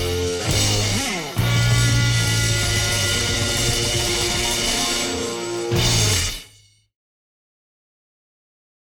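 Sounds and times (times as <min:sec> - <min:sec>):
instrumental music: 0:00.0 - 0:06.8.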